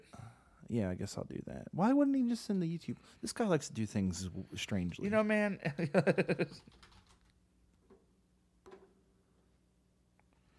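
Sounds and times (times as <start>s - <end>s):
speech: 0.7s - 6.9s
typing on a computer keyboard: 6.6s - 7.4s.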